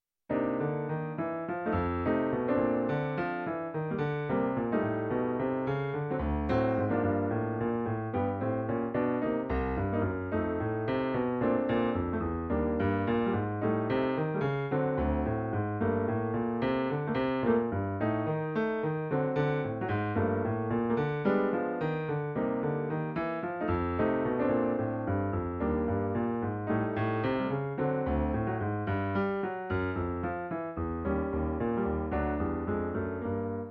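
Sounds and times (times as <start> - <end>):
bass: 0.3 - 33.6.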